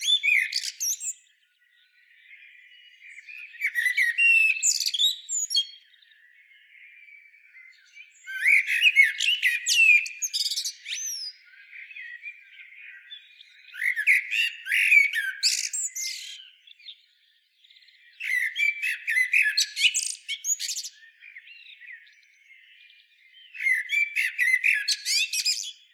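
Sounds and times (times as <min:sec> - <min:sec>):
common blackbird singing: 0:00.0 - 0:25.9.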